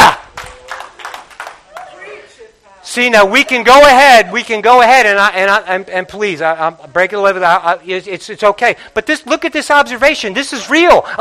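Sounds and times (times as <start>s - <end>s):
small audience clapping: 0.0s - 2.0s
speech: 2.9s - 11.1s.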